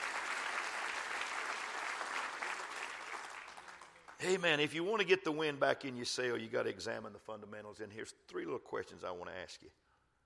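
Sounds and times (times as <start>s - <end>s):
audience clapping hands: 0.0s - 4.6s
speech: 4.2s - 9.8s.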